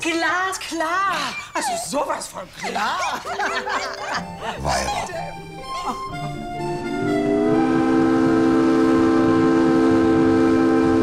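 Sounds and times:
speech: 0.0 - 6.5
laughter: 2.6 - 6.7
steam engine whistle shrieking: 6.9 - 11.0.

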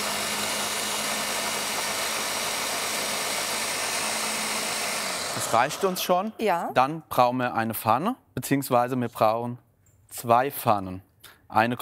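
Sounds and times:
kitchen blender running at full power: 0.0 - 6.5
speech: 5.4 - 11.7.

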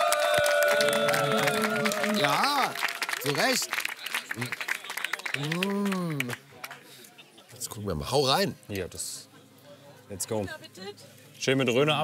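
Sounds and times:
audience applause: 0.0 - 6.8
speech: 2.2 - 3.8, 4.4 - 4.6, 5.4 - 6.4, 7.7 - 9.3, 10.1 - 12.0.

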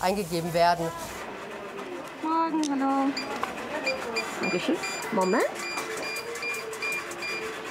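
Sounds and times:
speech: 0.0 - 1.2, 2.2 - 3.3, 4.1 - 5.7
check-in data device beeping: 3.0 - 7.6.

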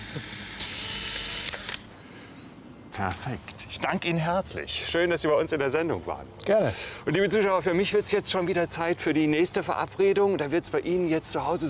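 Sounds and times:
camera mechanical whirring buzz: 0.0 - 1.9
speech: 0.1 - 0.4, 3.0 - 11.6.

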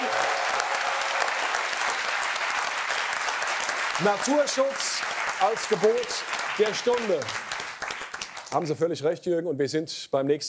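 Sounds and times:
audience applause: 0.0 - 8.7
speech: 4.0 - 7.4, 8.5 - 10.4.

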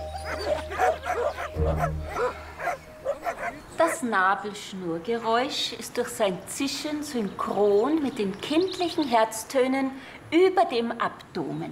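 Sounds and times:
dog yelping barks and whimpers: 0.1 - 4.0
speech: 1.6 - 2.2, 4.0 - 11.7.

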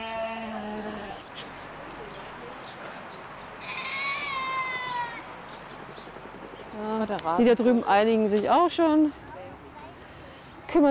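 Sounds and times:
goat bleating: 0.0 - 1.2, 3.6 - 5.3
speech: 7.1 - 9.2.

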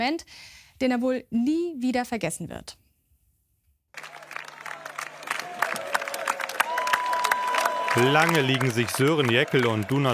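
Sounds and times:
speech: 0.0 - 2.8, 8.0 - 10.1
festival crowd chanting and cheering: 4.0 - 10.0.

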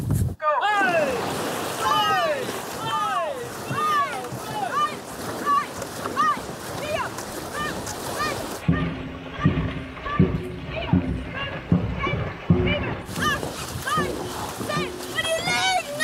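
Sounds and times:
people shouting excitedly: 0.5 - 16.0
paddles splashing through water: 0.6 - 16.0.

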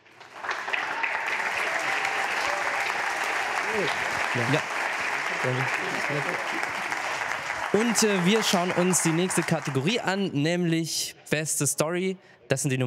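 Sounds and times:
sustained crowd applause: 0.0 - 10.3
speech: 3.7 - 4.7, 5.4 - 6.9, 7.7 - 12.8.

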